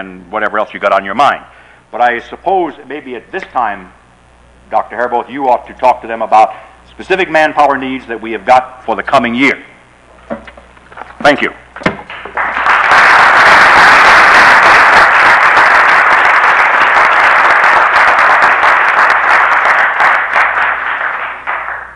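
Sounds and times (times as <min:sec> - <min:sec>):
speech: 0:00.0 - 0:04.0, 0:04.7 - 0:09.7, 0:11.2 - 0:11.6
crowd applauding: 0:12.1 - 0:21.9.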